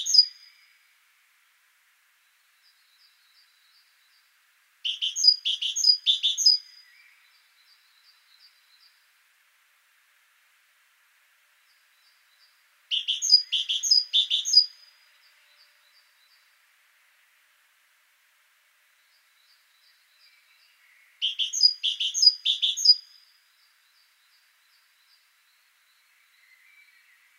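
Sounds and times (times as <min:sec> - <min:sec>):
great tit calls: 0:00.0 - 0:00.5, 0:04.8 - 0:06.8, 0:12.9 - 0:14.9, 0:21.2 - 0:23.2.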